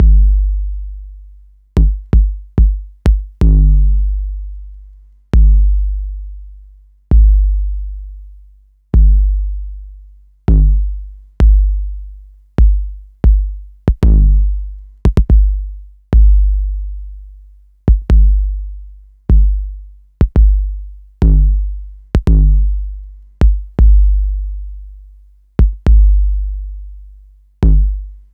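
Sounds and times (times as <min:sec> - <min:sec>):
808 tape kick drum: 0:00.0 - 0:28.3.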